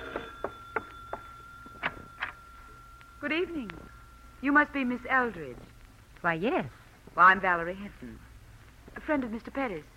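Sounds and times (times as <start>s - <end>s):
front door bell ringing: 0.0s - 5.8s
speech: 3.3s - 8.3s, 9.1s - 9.9s.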